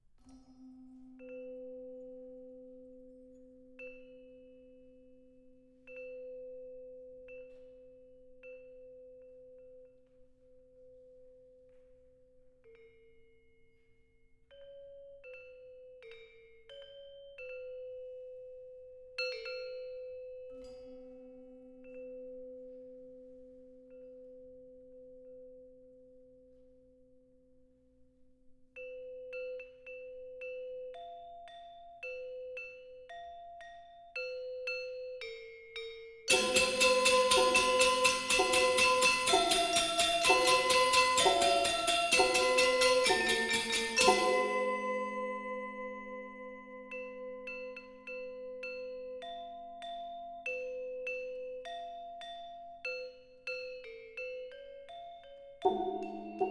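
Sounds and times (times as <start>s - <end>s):
angklung music: 36.3s - 48.8s, 55.6s - 56.4s.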